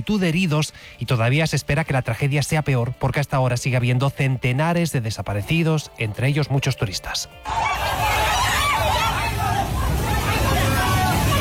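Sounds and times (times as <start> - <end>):
speech: 0.0 - 8.0
laughter: 5.3 - 11.4
people screaming in terror at flash flood torrent: 7.3 - 11.4
flash flood torrent roaring: 7.4 - 11.4.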